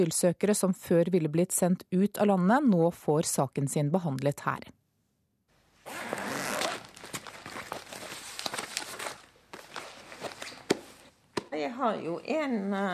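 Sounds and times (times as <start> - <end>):
speech: 0.0 - 4.8, 11.6 - 12.9
large green folder rustling as pulled out of a backpack: 5.9 - 11.1.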